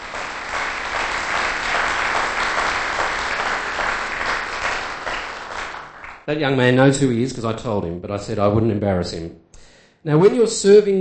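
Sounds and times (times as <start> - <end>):
audience applause: 0.0 - 6.3
speech: 6.3 - 9.4, 10.0 - 10.9.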